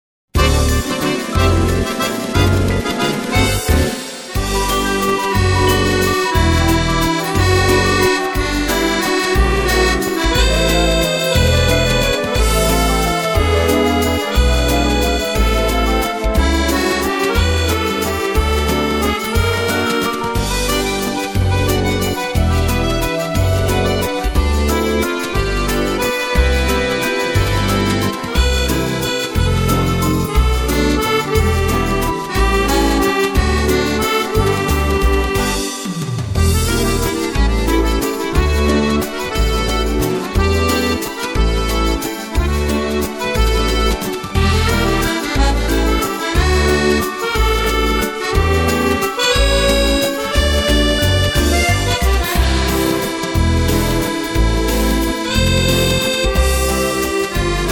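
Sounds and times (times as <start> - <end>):
Viennese waltz music: 0.4 - 57.7.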